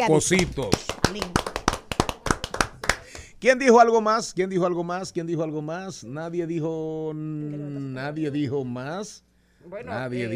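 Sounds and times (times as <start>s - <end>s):
speech: 0.0s - 1.4s, 3.4s - 10.3s
hand clapping applause: 0.3s - 3.3s.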